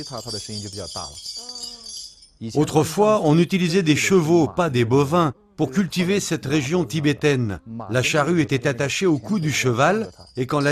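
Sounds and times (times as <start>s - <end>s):
speech: 0.0s - 1.5s, 2.4s - 10.7s
bells being shaken: 0.0s - 3.6s, 8.3s - 10.7s.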